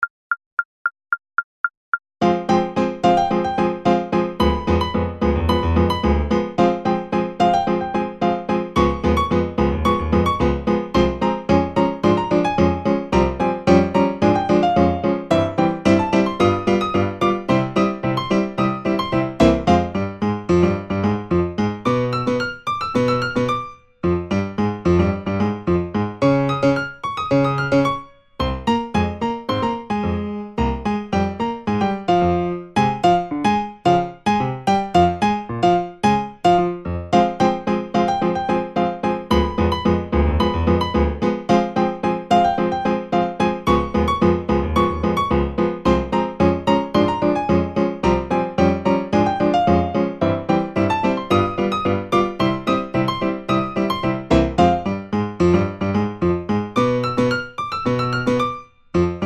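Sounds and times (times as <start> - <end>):
charleston-style piano duet at 110 bpm, secondo and primo parts: 2.2 - 59.2.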